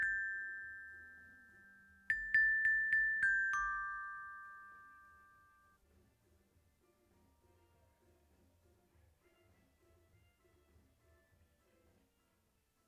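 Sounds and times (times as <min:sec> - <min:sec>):
xylophone: 0:00.0 - 0:05.7.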